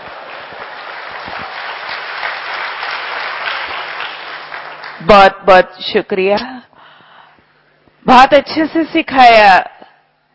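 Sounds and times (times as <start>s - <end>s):
audience clapping: 0.0s - 5.1s
speech: 5.0s - 6.6s, 8.0s - 9.7s.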